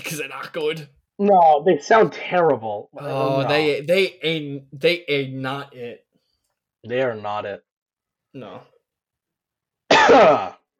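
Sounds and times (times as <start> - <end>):
speech: 0.0 - 6.0, 6.8 - 7.7, 8.4 - 8.7, 10.1 - 10.6
sneeze or cough: 9.9 - 10.6.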